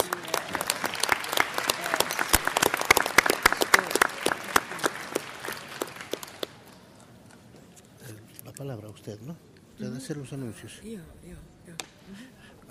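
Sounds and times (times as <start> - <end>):
applause: 0.0 - 6.9
speech: 8.6 - 12.6.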